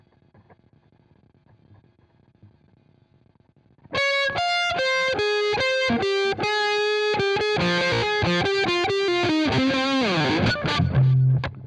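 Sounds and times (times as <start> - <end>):
guitar: 3.8 - 11.6.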